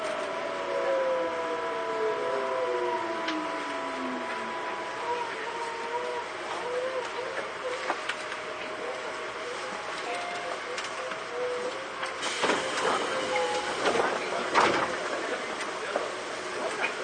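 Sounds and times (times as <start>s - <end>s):
Tobu 9000 series train motor whine: 0.0s - 9.9s
Tobu 9000 series train rolling: 0.0s - 17.0s.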